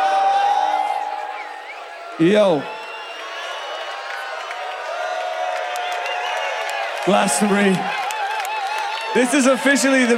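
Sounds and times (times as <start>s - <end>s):
huge festival crowd cheering at a Glastonbury gig: 0.0s - 10.1s
whistles from the festival crowd: 1.2s - 2.0s, 2.6s - 4.0s, 6.0s - 6.6s
speech: 2.2s - 2.8s, 7.1s - 8.1s, 9.2s - 10.1s.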